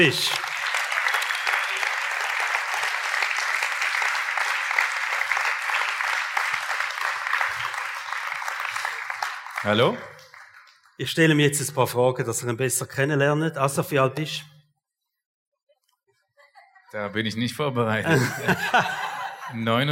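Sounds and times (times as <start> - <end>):
speech: 0.0 - 0.4, 9.6 - 10.1, 11.0 - 14.5, 16.9 - 19.9
large audience applause welcoming guest on stage: 0.0 - 11.4, 18.1 - 19.2
laughter: 16.3 - 17.4, 18.0 - 19.8.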